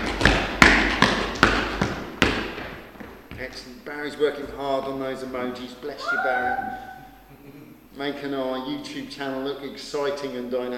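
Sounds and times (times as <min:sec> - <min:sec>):
audience stomping feet: 0:00.0 - 0:03.6
speech: 0:03.5 - 0:06.9, 0:08.0 - 0:10.7.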